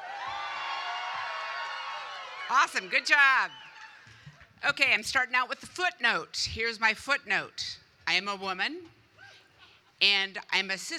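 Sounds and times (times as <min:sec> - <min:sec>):
crowd screaming and cheering: 0:00.0 - 0:04.2
speech: 0:02.5 - 0:03.7, 0:04.6 - 0:09.0, 0:10.0 - 0:10.9.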